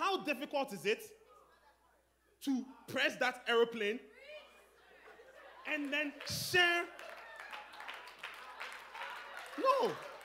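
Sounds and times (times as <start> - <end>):
speech: 0.2 - 1.3, 2.4 - 4.1, 5.6 - 7.0, 9.6 - 10.1
people clapping hands: 5.0 - 10.2.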